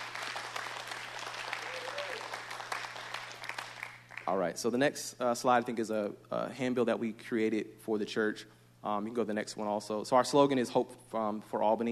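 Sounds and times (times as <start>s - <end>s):
crowd applause: 0.0s - 4.3s
speech: 4.3s - 11.9s.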